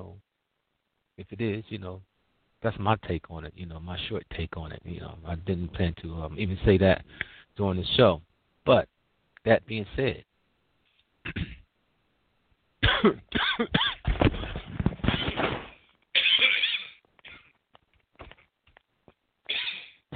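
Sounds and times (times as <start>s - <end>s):
speech: 1.2s - 10.3s, 13.0s - 13.9s
person coughing after choking: 11.2s - 11.7s, 12.8s - 14.6s, 16.2s - 17.5s, 19.5s - 20.0s
throat clearing: 11.2s - 11.7s, 12.8s - 14.5s, 19.5s - 20.0s.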